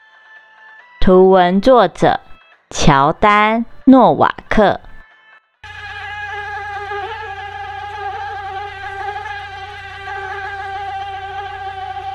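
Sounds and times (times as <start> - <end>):
speech: 1.0 - 2.2, 2.8 - 4.8
mosquito whine: 5.7 - 12.1.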